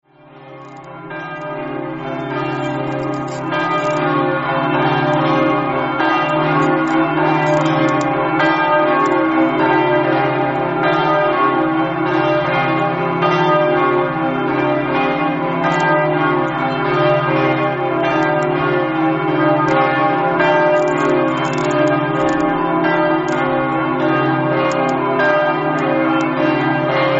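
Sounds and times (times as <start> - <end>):
bells ringing: 0.2 - 27.1.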